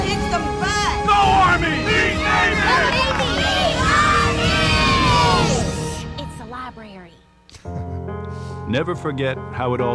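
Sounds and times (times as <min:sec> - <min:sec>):
crowd cheering: 0:01.0 - 0:06.0
speech: 0:08.7 - 0:09.9.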